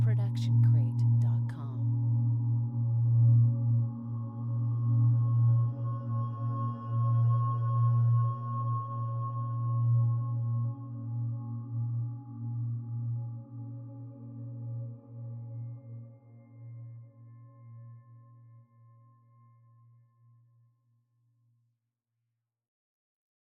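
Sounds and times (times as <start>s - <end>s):
warm analogue pad: 0.0s - 18.0s.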